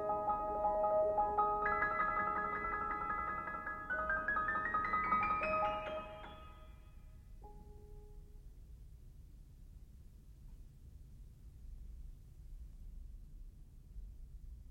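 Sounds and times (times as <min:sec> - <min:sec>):
piano prelude: 0:00.0 - 0:08.0.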